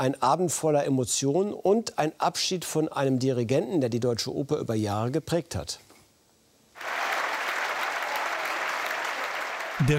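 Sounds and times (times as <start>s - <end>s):
speech: 0.0s - 5.9s, 9.8s - 9.9s
opera audience applause: 6.8s - 9.9s.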